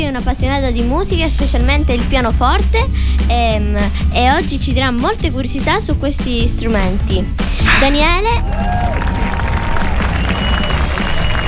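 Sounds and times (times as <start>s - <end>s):
speech: 0.0s - 9.1s
applause sound effect: 8.4s - 11.4s.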